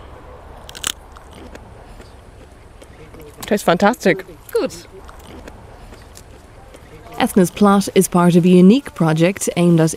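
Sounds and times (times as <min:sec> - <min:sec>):
bite into a fresh raw washed radish: 0:00.6 - 0:02.9, 0:05.0 - 0:06.8
speech: 0:03.4 - 0:04.9, 0:07.2 - 0:09.9.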